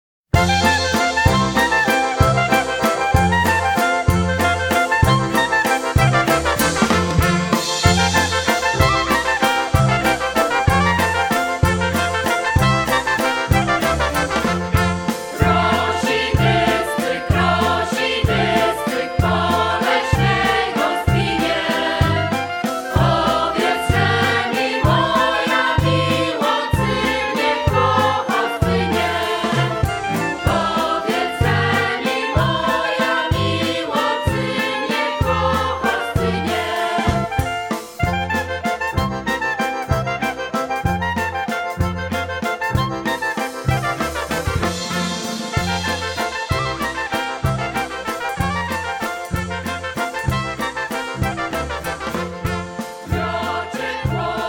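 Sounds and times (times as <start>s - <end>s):
Polish oberek folk dance music: 0.4s - 54.4s.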